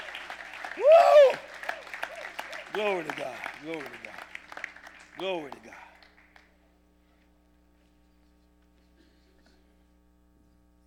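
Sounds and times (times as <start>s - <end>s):
audience clapping: 0.0s - 6.6s
speech: 2.8s - 4.3s, 5.2s - 5.8s.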